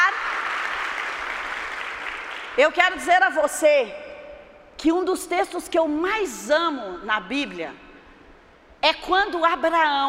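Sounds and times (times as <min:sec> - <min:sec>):
audience applause: 0:00.0 - 0:02.5
speech: 0:02.6 - 0:04.1, 0:04.8 - 0:07.8, 0:08.8 - 0:10.0.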